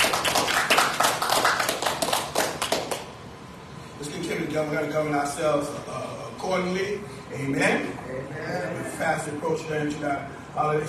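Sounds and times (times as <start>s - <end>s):
audience hand clapping: 0.0s - 3.1s
speech: 4.6s - 10.8s.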